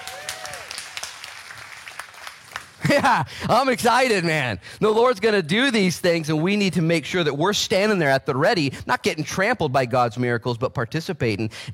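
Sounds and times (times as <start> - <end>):
audience clapping: 0.0 - 3.3
speech: 2.9 - 11.7.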